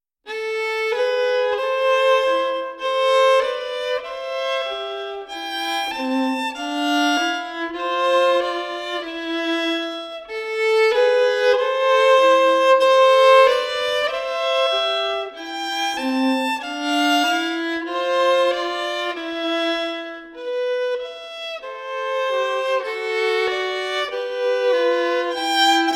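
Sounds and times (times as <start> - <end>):
violin duet playing a gavottina: 0.3 - 25.9.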